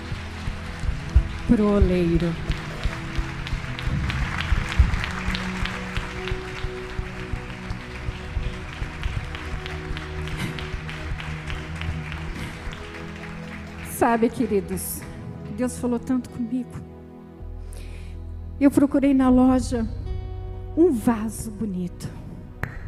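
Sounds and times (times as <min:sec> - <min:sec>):
audience applause: 0:00.0 - 0:14.8
speech: 0:01.5 - 0:02.5, 0:14.0 - 0:16.9, 0:18.6 - 0:20.0, 0:20.8 - 0:22.2.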